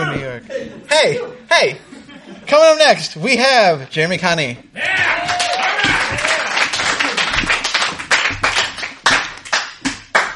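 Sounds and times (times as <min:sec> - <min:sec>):
speech: 0:00.2 - 0:05.6
live show audience cheering: 0:04.8 - 0:07.8
live show audience applause: 0:05.0 - 0:10.3.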